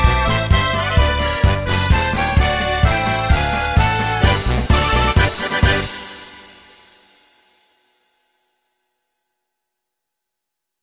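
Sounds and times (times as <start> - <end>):
polka music: 0.0 - 6.9.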